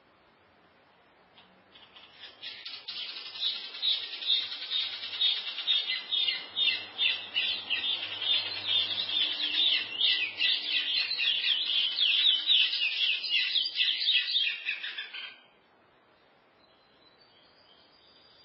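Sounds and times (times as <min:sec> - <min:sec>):
chestnut-bellied seed finch singing: 0:01.8 - 0:15.4.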